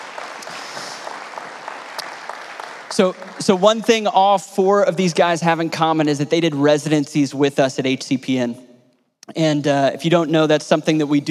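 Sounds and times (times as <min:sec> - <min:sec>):
audience round of applause: 0:00.0 - 0:04.4
speech: 0:03.0 - 0:08.7, 0:09.3 - 0:11.2.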